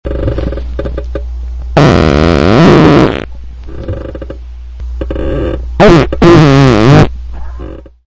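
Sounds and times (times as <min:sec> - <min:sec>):
fart: 0:00.1 - 0:01.0, 0:01.8 - 0:04.4, 0:05.0 - 0:08.0.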